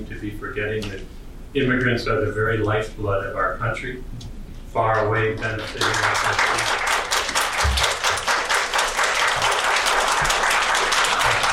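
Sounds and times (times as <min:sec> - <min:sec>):
speech: 0:00.0 - 0:06.7
large audience applauding at citizenship ceremony: 0:05.6 - 0:11.5.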